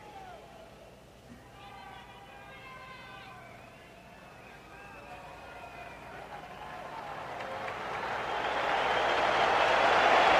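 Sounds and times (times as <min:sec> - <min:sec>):
stadium crowd applauding: 0:04.7 - 0:10.3.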